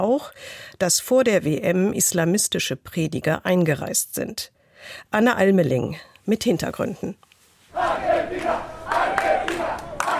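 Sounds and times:
speech: 0.0 - 8.8
football fans cheering and chanting: 7.7 - 10.1.

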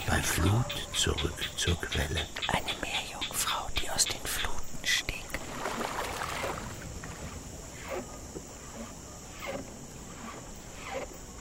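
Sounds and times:
faint steady high hiss: 0.0 - 11.3
speech: 0.2 - 3.0
canoe paddle dipping into water: 5.4 - 11.3.

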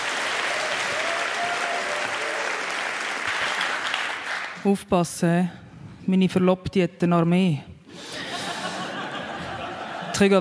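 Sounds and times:
audience applause: 0.0 - 4.6
speech: 4.6 - 7.7, 10.2 - 10.3
laughter: 8.1 - 10.3.

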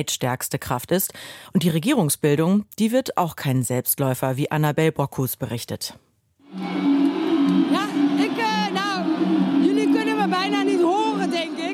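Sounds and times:
speech: 0.0 - 6.7
crowd cheering at election party: 6.5 - 11.7.

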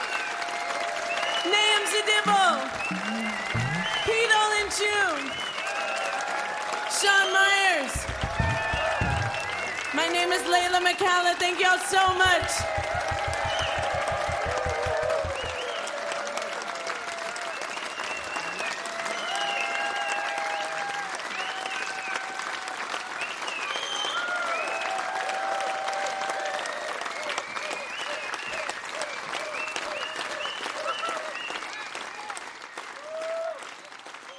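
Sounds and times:
faint cheers and whistles: 0.0 - 11.4, 12.0 - 34.3
audience applause at a live concert: 0.0 - 34.3
speech: 1.4 - 3.0, 10.3 - 13.0
music: 12.1 - 15.6.

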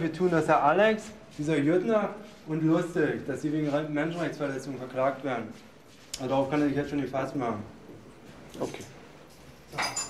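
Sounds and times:
speech: 0.0 - 7.8, 8.6 - 8.9
prison keys jangling: 8.6 - 10.0.

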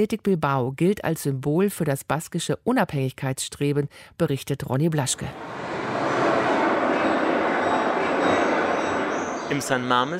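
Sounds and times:
speech: 0.0 - 5.9, 9.5 - 10.1
steam locomotive rattling on a video wall: 5.1 - 10.1.

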